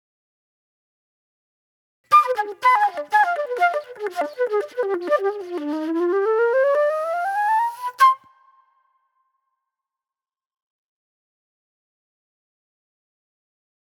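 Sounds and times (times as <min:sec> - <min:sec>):
soul flute music: 0:02.1 - 0:08.7.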